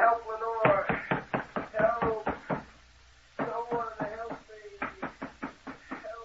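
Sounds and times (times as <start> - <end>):
pounding on a locked door: 0.6 - 2.7, 3.4 - 6.1.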